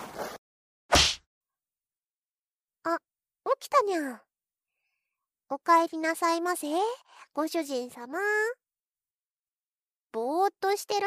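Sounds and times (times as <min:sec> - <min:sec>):
hard slap across the face: 0:00.9 - 0:01.2
speech: 0:02.8 - 0:04.3, 0:05.5 - 0:08.6, 0:10.1 - 0:11.0.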